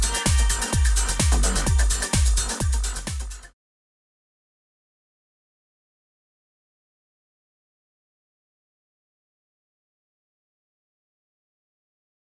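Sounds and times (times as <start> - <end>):
house music sample: 0.0 - 3.5.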